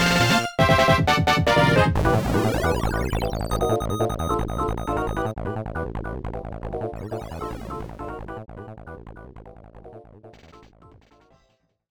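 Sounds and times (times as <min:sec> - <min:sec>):
techno music: 0:00.0 - 0:09.4.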